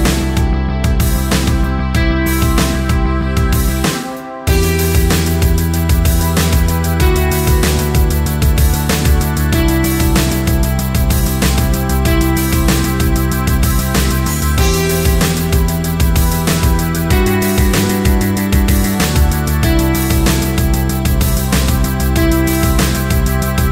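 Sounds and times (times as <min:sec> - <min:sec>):
karaoke backing track: 0:00.0 - 0:23.7.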